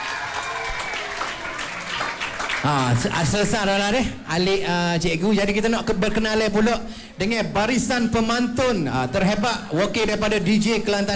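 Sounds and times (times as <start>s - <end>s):
audience applauding: 0.0s - 3.5s
speech: 2.6s - 11.1s.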